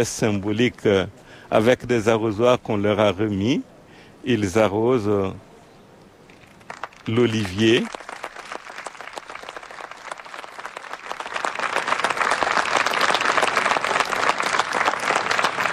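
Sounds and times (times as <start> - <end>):
speech: 0.0 - 5.5, 7.1 - 8.0
applause from staff: 6.6 - 15.7.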